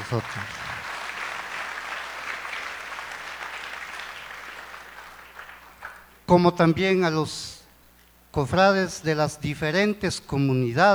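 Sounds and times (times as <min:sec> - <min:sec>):
audience applause: 0:00.0 - 0:06.0
speech: 0:00.1 - 0:00.7, 0:06.3 - 0:07.6, 0:08.4 - 0:10.9.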